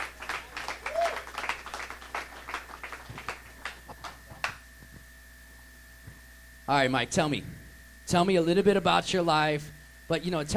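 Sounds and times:
audience clapping: 0.0s - 4.6s
speech: 6.7s - 10.5s.

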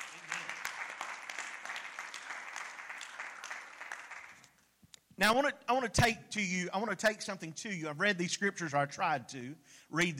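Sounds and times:
audience hand clapping: 0.0s - 4.6s
speech: 5.2s - 10.1s.

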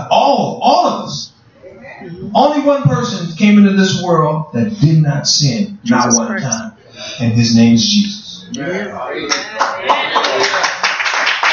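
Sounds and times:
speech: 2.3s - 10.6s
audience clapping: 9.3s - 11.5s.

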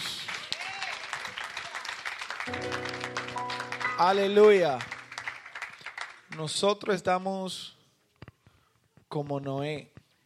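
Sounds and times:
audience applauding: 0.0s - 6.9s
speech: 4.0s - 4.9s, 6.4s - 7.8s, 9.2s - 9.9s.

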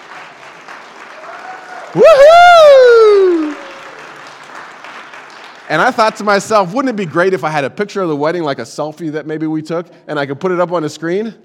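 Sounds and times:
audience applause: 0.0s - 6.5s
speech: 1.9s - 2.5s, 5.7s - 11.4s.

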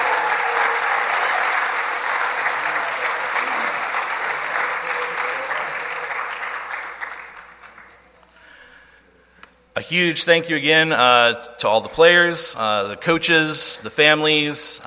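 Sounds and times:
audience applause: 0.0s - 8.1s
speech: 9.8s - 14.8s.

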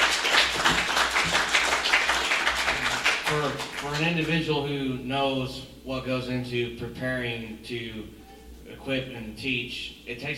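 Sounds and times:
crowd applauding: 0.0s - 4.2s
speech: 3.3s - 10.3s.

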